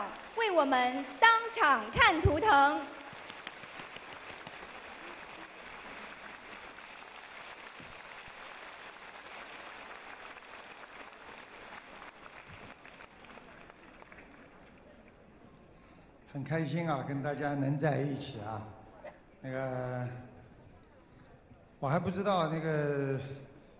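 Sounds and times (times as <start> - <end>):
large audience applause: 0.0 - 15.1
speech: 0.4 - 3.0, 16.4 - 18.8, 19.4 - 20.3, 21.8 - 23.5.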